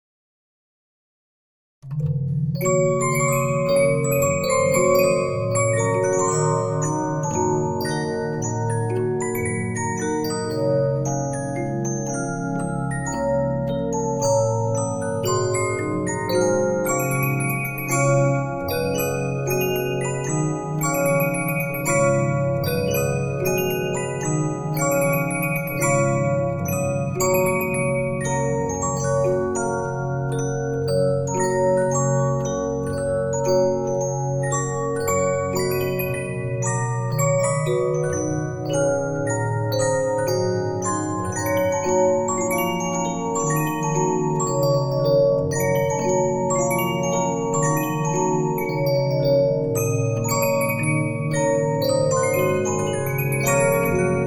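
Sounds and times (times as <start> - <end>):
Regina 15-inch disc music box: 1.8 - 54.2.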